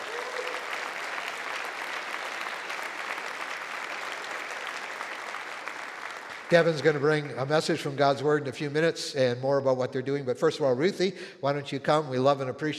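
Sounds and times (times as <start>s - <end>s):
church congregation at Central Assembly applauding to welcome missionaries back: 0.0s - 8.0s
speech: 6.5s - 12.7s.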